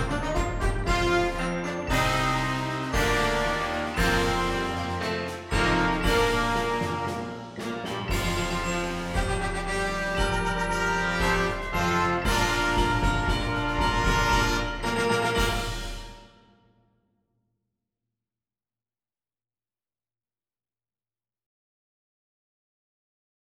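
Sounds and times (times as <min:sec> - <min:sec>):
full ensemble fanfare: 0:00.0 - 0:16.5.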